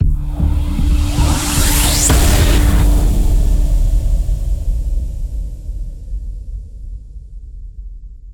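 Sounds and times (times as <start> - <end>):
transition sound: 0.0 - 6.3.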